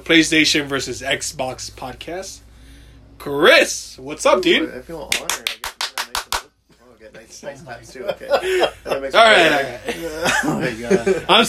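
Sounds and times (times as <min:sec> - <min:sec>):
speech: 0:00.0 - 0:02.4, 0:03.2 - 0:05.6, 0:07.1 - 0:11.4
hand clapping: 0:05.1 - 0:06.5
laughter: 0:07.2 - 0:11.4.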